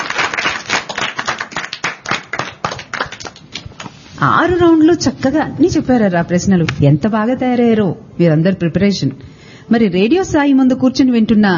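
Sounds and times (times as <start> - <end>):
group clapping at a children's quiz: 0.0 - 4.0
speech: 4.2 - 11.5.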